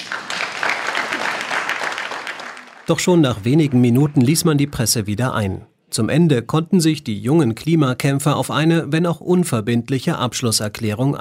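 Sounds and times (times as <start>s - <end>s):
applause at a youth climate meeting in Lausanne greeting Greta Thunberg: 0.0s - 5.2s
speech: 2.9s - 11.1s.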